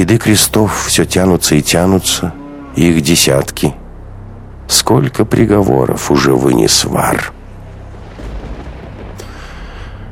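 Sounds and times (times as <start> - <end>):
speech: 0.0 - 3.8, 4.7 - 7.4
distant thunderstorm rumbling: 7.3 - 10.1.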